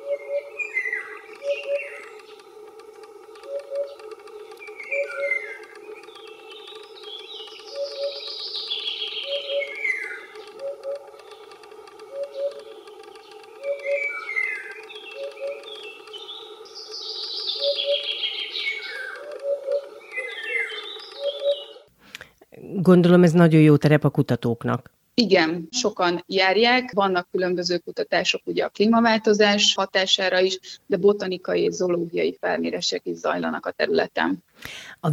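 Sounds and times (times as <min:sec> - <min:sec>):
Eurasian hoopoe call: 0:00.0 - 0:02.4, 0:03.4 - 0:04.0, 0:04.6 - 0:11.0, 0:12.1 - 0:21.9
speech: 0:22.8 - 0:35.1.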